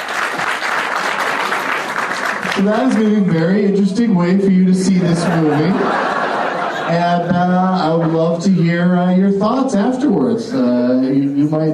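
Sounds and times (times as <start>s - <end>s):
audience applause: 0.0s - 3.3s
speech: 2.6s - 6.1s, 6.9s - 11.7s
laughter: 4.8s - 9.2s.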